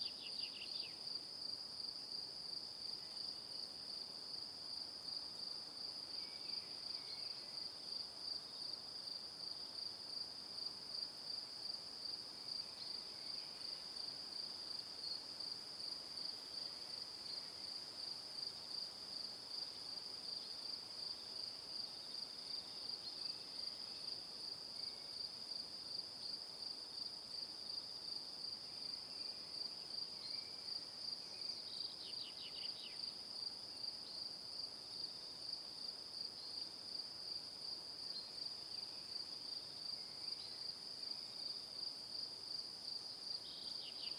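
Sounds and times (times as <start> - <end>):
crickets chirping: 0.0 - 44.1.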